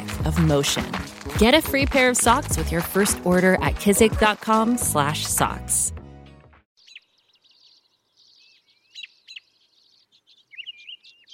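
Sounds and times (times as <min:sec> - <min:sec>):
speech: 0:00.2 - 0:06.0
robin singing in spring: 0:06.8 - 0:11.3.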